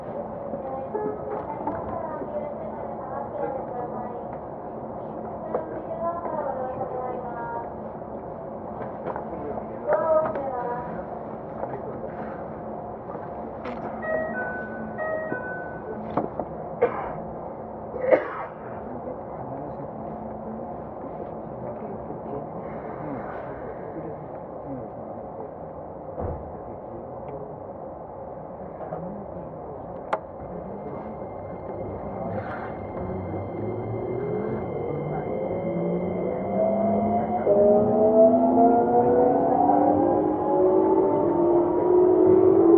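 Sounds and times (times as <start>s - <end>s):
Keikyu 2100 series train running from Yokohama toward Misakiguchi: 0.0s - 42.7s
quiet voices: 0.0s - 42.7s
rising motor whine as the train speeds up: 31.8s - 42.7s.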